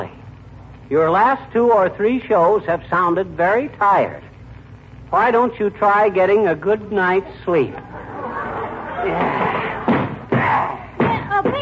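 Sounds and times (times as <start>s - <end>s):
speech: 0.9s - 4.3s, 5.1s - 8.1s, 9.0s - 9.8s
laughter: 7.1s - 10.6s
kicking a cedar chair: 9.2s - 11.5s.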